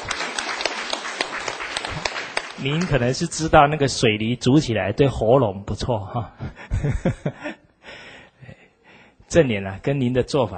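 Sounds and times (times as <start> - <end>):
audience applause: 0.0 - 3.2
speech: 2.6 - 7.5, 9.3 - 10.5.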